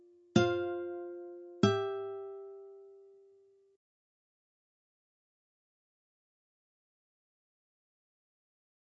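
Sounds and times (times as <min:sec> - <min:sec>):
guitar: 0:00.0 - 0:03.7.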